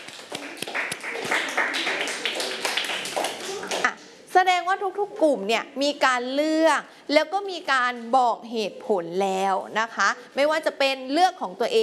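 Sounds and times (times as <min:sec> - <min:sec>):
group of children clapping: 0:00.0 - 0:03.9
speech: 0:04.4 - 0:11.8.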